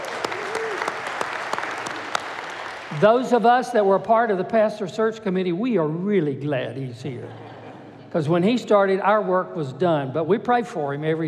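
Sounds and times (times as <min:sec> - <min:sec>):
audience applause: 0:00.0 - 0:03.3
speech: 0:02.9 - 0:07.4, 0:08.1 - 0:11.2
laughter: 0:07.1 - 0:08.1.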